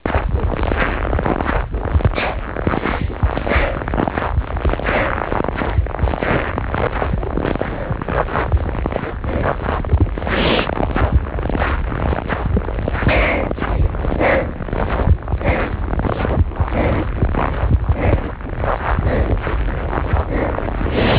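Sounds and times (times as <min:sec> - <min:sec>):
footsteps walking: 0:00.0 - 0:21.1.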